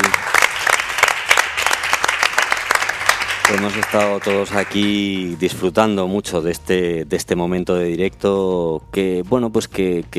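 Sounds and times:
audience applause: 0.0 - 5.3
speech: 3.5 - 10.1.

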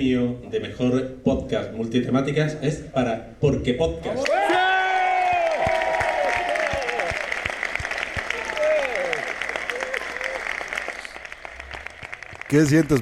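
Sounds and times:
speech: 0.0 - 4.6, 12.5 - 13.0
people cheering and whooping: 4.2 - 11.9
award-ceremony audience applause: 4.2 - 13.0.

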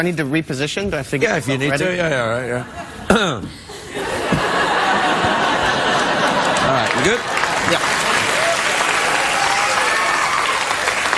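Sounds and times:
speech: 0.0 - 4.5, 6.7 - 8.0
laughter: 2.1 - 9.0
audience applause: 4.7 - 11.1.

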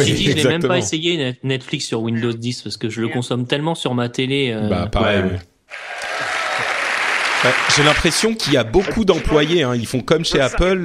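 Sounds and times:
speech: 0.0 - 5.9, 7.4 - 10.8
audience cheering and applauding: 5.7 - 9.5
laughter: 5.8 - 9.6.

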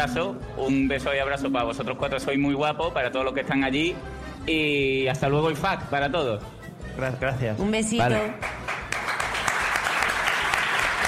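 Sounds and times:
speech: 0.0 - 8.6
large crowd applauding, standing ovation: 8.2 - 11.0.

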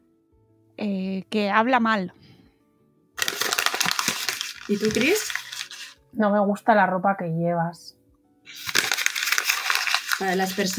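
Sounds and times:
speech: 0.8 - 2.2, 4.7 - 5.3, 6.1 - 7.9, 10.2 - 10.7
sheet of paper being crumpled: 3.2 - 6.0, 8.5 - 10.7.

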